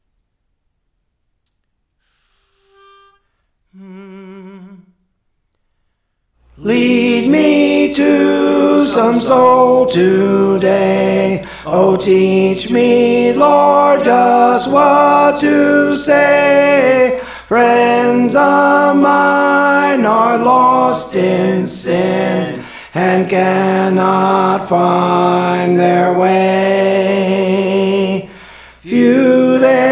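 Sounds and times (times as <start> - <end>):
tenor singing songs: 6.5 - 29.9.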